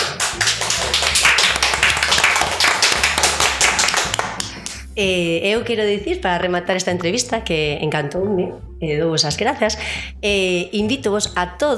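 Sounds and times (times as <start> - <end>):
audience applause: 0.0 - 4.7
speech: 5.0 - 11.7.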